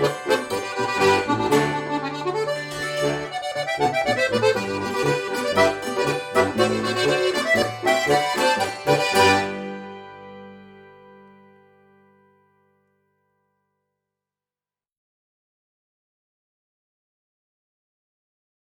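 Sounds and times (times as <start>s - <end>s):
polka music: 0.0s - 11.6s.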